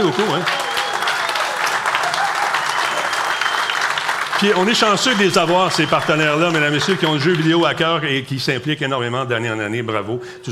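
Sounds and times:
speech: 0.0 - 0.6, 4.4 - 10.5
audience applause: 0.0 - 8.2.

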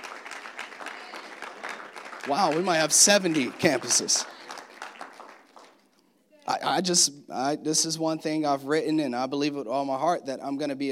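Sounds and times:
audience clapping: 0.0 - 6.0
speech: 2.3 - 4.4, 6.6 - 10.9.

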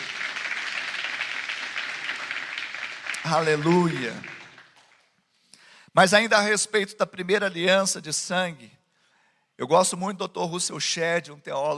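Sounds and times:
audience applauding: 0.0 - 5.2
speech: 3.3 - 4.4, 6.0 - 8.8, 9.6 - 11.7.

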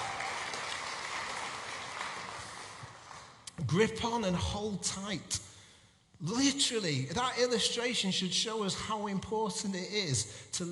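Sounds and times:
audience clapping: 0.0 - 3.5
speech: 3.6 - 5.5, 6.2 - 10.7.

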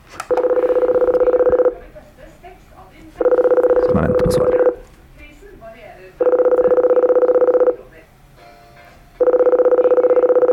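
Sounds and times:
intercom call button ringing tone: 0.3 - 2.0, 3.2 - 4.9, 6.2 - 7.9, 9.2 - 10.5.

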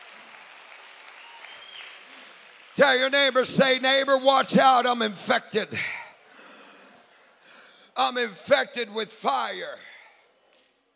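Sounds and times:
audience clapping hands: 0.0 - 3.8
speech: 2.8 - 6.0, 8.0 - 9.9.

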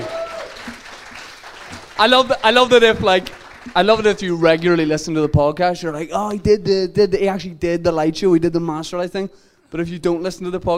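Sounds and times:
audience round of applause: 0.0 - 4.6
speech: 2.0 - 10.7.

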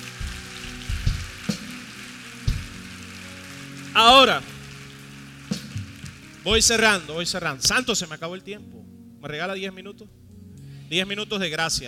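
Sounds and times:
audience applause: 0.0 - 7.0
speech: 4.0 - 4.5, 6.4 - 10.2, 10.9 - 11.8.

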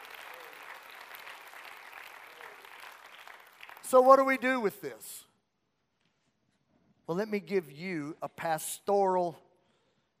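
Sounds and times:
audience clapping hands: 0.0 - 5.0
speech: 3.9 - 5.3, 7.1 - 9.5.

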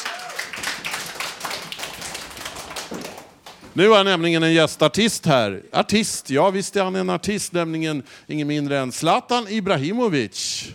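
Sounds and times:
audience applause: 0.0 - 3.6
speech: 3.8 - 10.7.

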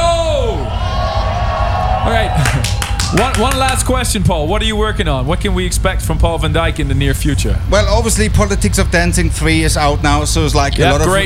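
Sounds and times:
concert crowd cheering: 0.0 - 4.5
laughter: 2.3 - 3.8
speech: 3.1 - 11.2.

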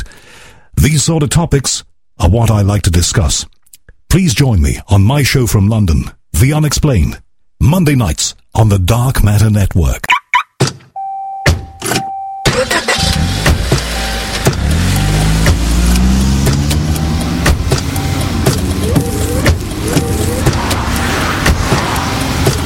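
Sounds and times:
speech: 0.8 - 10.1
car door shutting: 10.6 - 22.6
car engine starting and accelerating: 12.5 - 22.6
scattered clicks: 13.7 - 22.6.

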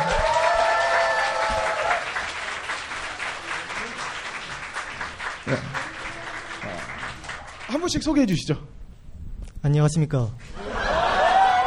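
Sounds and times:
applause: 0.0 - 8.1
speech: 5.5 - 5.7, 7.8 - 8.7, 9.6 - 10.6
laughter: 10.5 - 11.6.

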